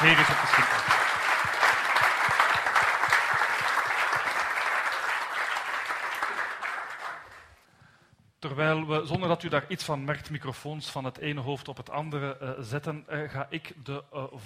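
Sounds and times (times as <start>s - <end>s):
speech: 0.0s - 0.9s, 8.6s - 14.4s
audience applause: 0.0s - 7.6s.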